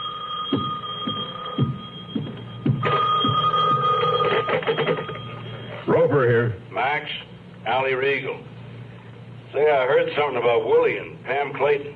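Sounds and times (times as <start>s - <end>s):
telephone ringing: 0.0s - 6.2s
speech: 6.2s - 8.5s, 9.5s - 11.9s.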